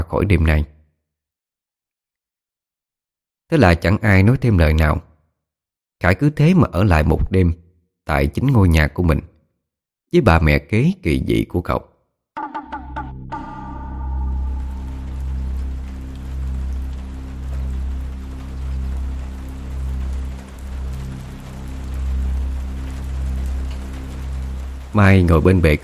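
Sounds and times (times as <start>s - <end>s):
speech: 0.1s - 0.7s, 3.5s - 5.1s, 6.0s - 9.3s, 10.1s - 11.9s, 25.0s - 25.8s
bright chime: 12.4s - 15.8s
low humming drone: 12.4s - 25.4s
afternoon rain pattering at a quiet café: 13.4s - 25.8s.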